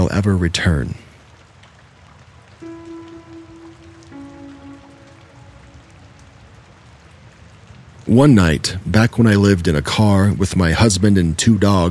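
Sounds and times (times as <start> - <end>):
rain falling: 0.0 - 11.8
speech: 0.1 - 1.0, 8.1 - 11.8
low droning tones: 2.6 - 7.4.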